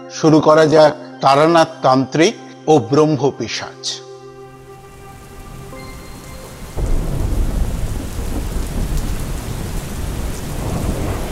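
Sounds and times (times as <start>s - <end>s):
speech: 0.1s - 4.1s
sudden heavy rain downpour on a cloudy day: 4.7s - 11.3s.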